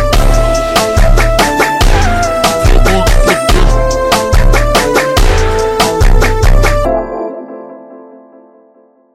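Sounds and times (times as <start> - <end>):
ultra slowed phonk music: 0.0 - 7.2.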